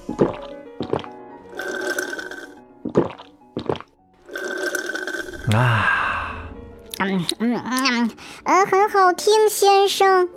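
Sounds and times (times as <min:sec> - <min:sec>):
person gulping and slurping juice: 0:00.0 - 0:06.0
speech: 0:05.5 - 0:06.0, 0:07.0 - 0:10.3.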